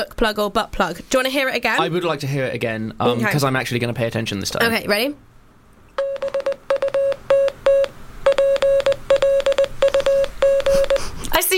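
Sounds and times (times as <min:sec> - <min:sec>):
speech: 0:00.0 - 0:05.3
Morse code beeps: 0:06.0 - 0:11.1.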